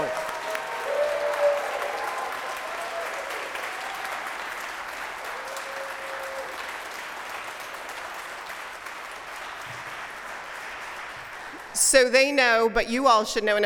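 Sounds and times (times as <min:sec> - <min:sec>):
congregation at First Unitarian Universalist Society of San Francisco applauding new members: 0:00.0 - 0:12.0
speech: 0:11.8 - 0:13.6.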